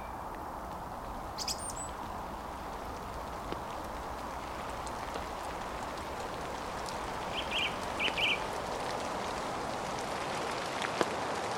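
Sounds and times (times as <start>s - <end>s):
forest soundscape from January to June: 0.0s - 11.4s.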